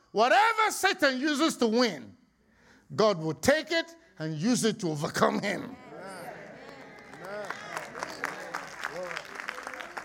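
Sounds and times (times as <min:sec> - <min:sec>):
speech: 0:00.1 - 0:02.2, 0:02.9 - 0:05.8
light scattered audience clapping: 0:06.1 - 0:10.0.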